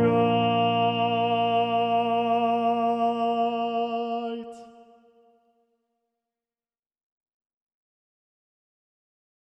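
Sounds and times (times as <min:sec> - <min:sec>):
low tenors singing in B flat major: 0:00.0 - 0:04.8.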